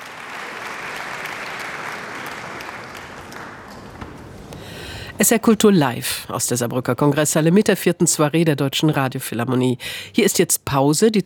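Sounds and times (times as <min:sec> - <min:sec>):
large concert audience applause in the Saarbrücker Kongresshalle: 0:00.0 - 0:05.0
speech: 0:05.2 - 0:11.2.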